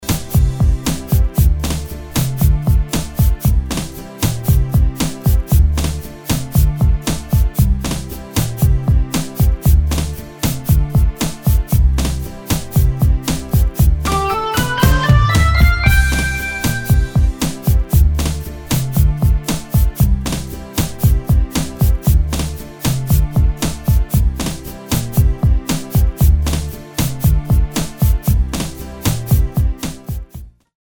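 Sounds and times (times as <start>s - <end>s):
karaoke song: 0.0s - 30.2s.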